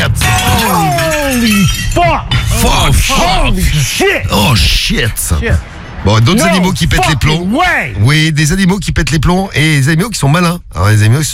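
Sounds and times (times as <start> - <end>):
vivarium glass shattering: 0.0 - 3.4
voices shouting: 0.0 - 4.6, 6.1 - 8.0
speech: 3.0 - 11.3.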